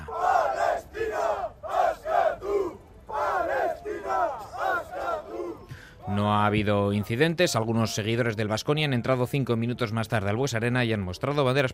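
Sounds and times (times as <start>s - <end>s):
protest crowd shouting slogans: 0.0s - 5.7s
speech: 6.2s - 11.7s.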